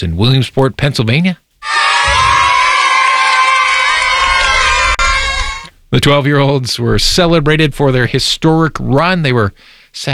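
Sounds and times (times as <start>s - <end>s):
speech: 0.0s - 1.8s, 6.0s - 10.1s
children whooping: 1.6s - 5.7s
crowd cheering welcoming a team home: 1.6s - 5.7s
brief low thumps: 2.0s - 9.6s.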